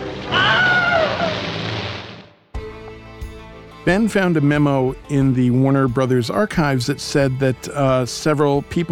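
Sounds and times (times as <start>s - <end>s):
stock film scream: 0.3s - 1.4s
speech: 3.9s - 8.9s.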